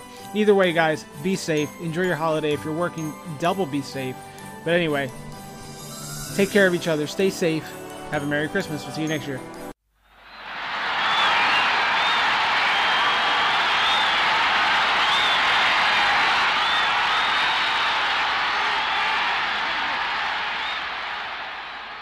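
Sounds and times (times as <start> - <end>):
speech: 0.3 - 5.3, 6.3 - 9.6
crowd cheering: 10.1 - 22.0.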